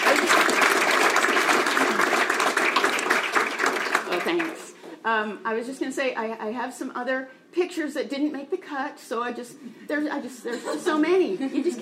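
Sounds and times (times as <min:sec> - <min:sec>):
audience applause: 0:00.0 - 0:04.8
speech: 0:04.3 - 0:11.8.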